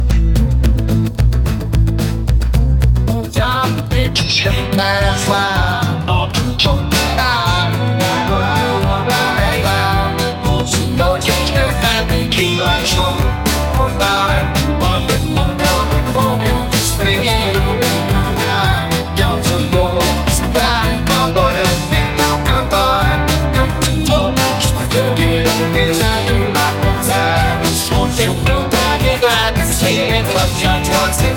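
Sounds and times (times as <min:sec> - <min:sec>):
folk pop music: 0:00.0 - 0:31.3.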